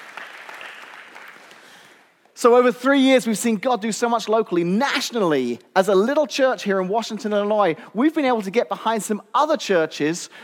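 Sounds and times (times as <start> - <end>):
audience applause: 0.0 - 2.0
speech: 2.4 - 10.4.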